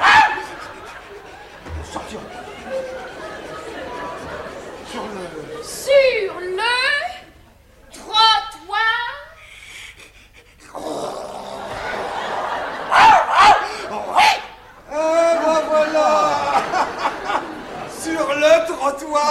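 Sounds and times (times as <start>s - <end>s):
person imitating a barking dog: 0.0s - 0.8s, 12.9s - 15.3s
laughter: 0.0s - 7.6s, 10.8s - 19.2s.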